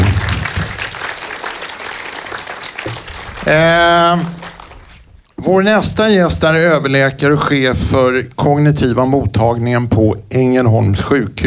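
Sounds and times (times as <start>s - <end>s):
audience clapping: 0.0s - 5.3s
speech: 3.5s - 4.4s, 5.4s - 11.4s.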